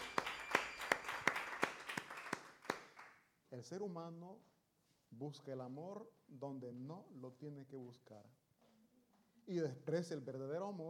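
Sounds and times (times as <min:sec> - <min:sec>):
audience applause: 0:00.0 - 0:03.1
speech: 0:03.5 - 0:04.5, 0:05.1 - 0:08.4, 0:09.5 - 0:10.8.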